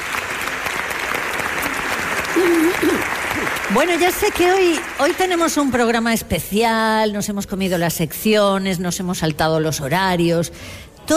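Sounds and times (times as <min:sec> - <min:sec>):
theatre audience applauding: 0:00.0 - 0:06.0
speech: 0:03.7 - 0:11.1.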